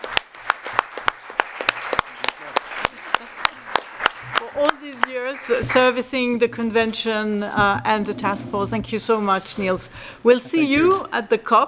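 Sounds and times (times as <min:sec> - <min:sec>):
audience applause: 0:00.0 - 0:05.9
speech: 0:05.5 - 0:11.6.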